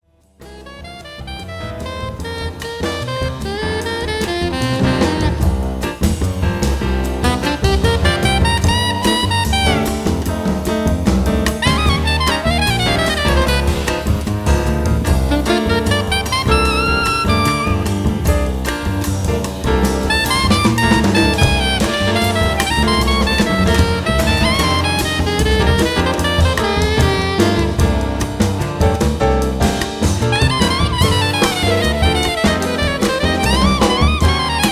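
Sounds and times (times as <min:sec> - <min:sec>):
trio playing fourteen-bar blues: 0:00.2 - 0:34.6.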